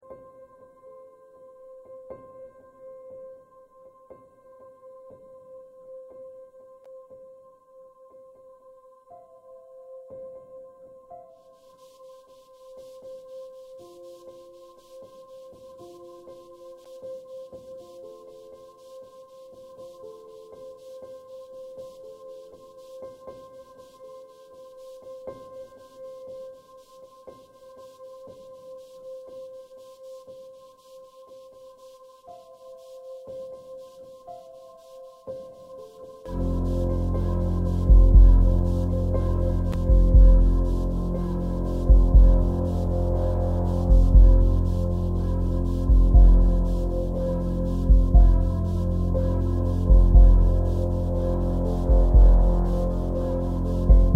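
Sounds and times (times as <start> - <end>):
tense music: 36.3 - 54.1.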